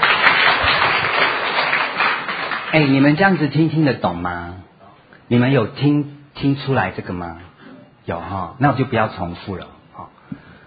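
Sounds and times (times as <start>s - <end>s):
audience applause: 0.0s - 3.5s
speech: 2.7s - 4.7s, 5.3s - 10.4s.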